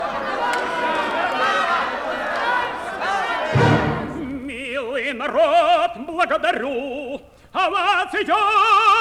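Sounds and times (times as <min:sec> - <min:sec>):
laughing costumed crowd bursting in: 0:00.0 - 0:04.8
heavy thump: 0:03.6 - 0:04.6
speech: 0:05.1 - 0:08.9.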